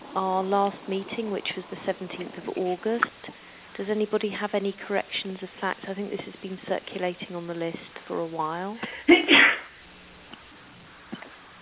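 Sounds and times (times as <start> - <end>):
speech: 0.2 - 9.5
sneeze: 9.1 - 9.8.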